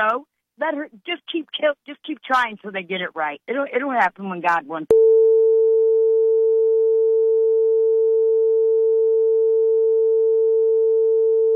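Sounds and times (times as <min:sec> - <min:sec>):
speech: 0:00.0 - 0:05.2
phone line beep tone: 0:04.9 - 0:11.5.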